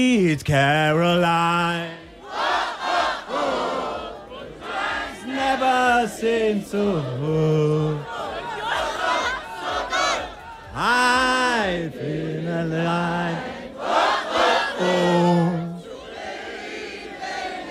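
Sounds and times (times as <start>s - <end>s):
speech: 0.0s - 2.0s
crowd of around 881 people singing in unison at an outdoor town gathering in Schwieberdingen: 0.0s - 17.6s.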